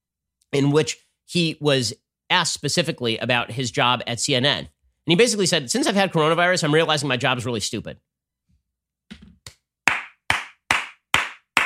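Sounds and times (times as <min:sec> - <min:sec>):
speech: 0:00.5 - 0:08.1
slow clap: 0:09.4 - 0:11.6.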